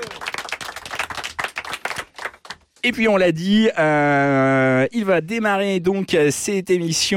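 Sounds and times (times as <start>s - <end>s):
audience applauding: 0.0s - 2.7s
speech: 2.8s - 7.1s.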